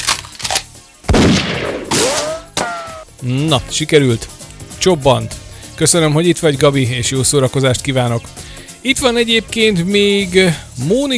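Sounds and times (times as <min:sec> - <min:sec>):
whining ricochet-like tone: 0:00.0 - 0:03.1
gunshot sound effect: 0:01.1 - 0:02.8
speech: 0:03.2 - 0:11.1.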